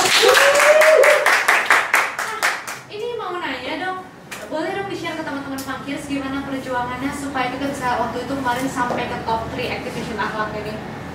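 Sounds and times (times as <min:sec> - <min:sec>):
applause, hands clapping: 0:00.0 - 0:02.8
speech: 0:06.7 - 0:11.0.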